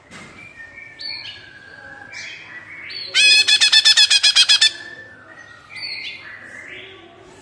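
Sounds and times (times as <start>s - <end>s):
greater green leafbird whistling and chattering trill: 0.6s - 6.2s.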